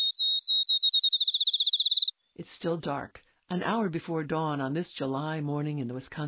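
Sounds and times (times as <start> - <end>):
field sparrow song, whistled accelerating trill: 0.0 - 2.4
speech: 2.4 - 6.2.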